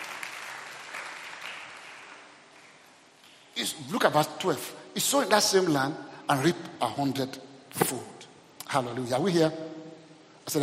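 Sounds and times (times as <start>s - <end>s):
audience clapping: 0.0s - 3.0s
speech: 3.6s - 9.8s.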